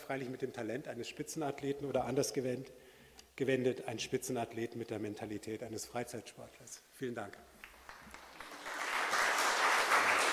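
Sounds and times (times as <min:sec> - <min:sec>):
speech: 0:00.1 - 0:07.6
audience applauding: 0:07.6 - 0:10.3.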